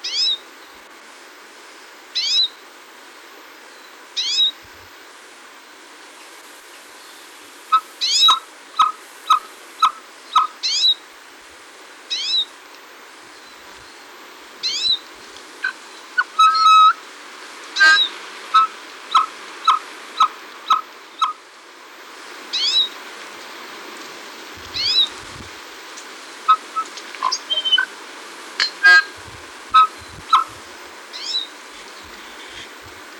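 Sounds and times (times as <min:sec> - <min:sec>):
tui calling on Chatham: 0:07.7 - 0:11.0, 0:14.6 - 0:17.0, 0:17.8 - 0:21.4, 0:24.6 - 0:25.5, 0:26.5 - 0:33.1.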